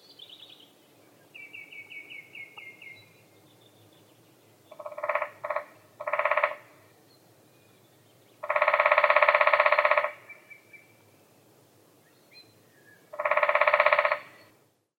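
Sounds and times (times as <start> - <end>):
lesser spotted woodpecker Dendrocopos minor calling: 1.4 - 3.2, 4.7 - 6.8, 8.4 - 10.9, 13.1 - 14.6.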